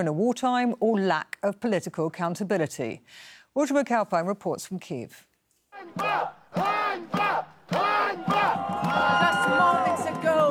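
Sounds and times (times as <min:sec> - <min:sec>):
speech: 0:00.0 - 0:09.7
protesters shouting shame: 0:05.8 - 0:10.4.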